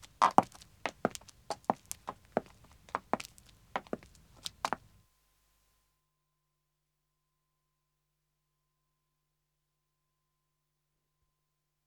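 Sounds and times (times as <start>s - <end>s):
footsteps of two women walking on pavement: 0.0s - 4.9s.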